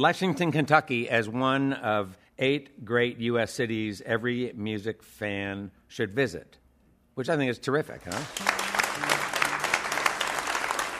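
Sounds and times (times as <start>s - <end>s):
speech: 0.0s - 6.6s, 7.2s - 9.1s
audience applauding: 8.0s - 10.9s.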